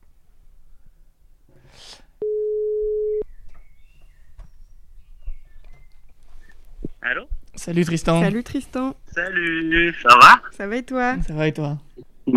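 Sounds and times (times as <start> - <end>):
electronic telephone tone while dialing: 2.2 - 3.2
faint clicks and chirps: 3.2 - 7.6
speech: 7.1 - 12.3.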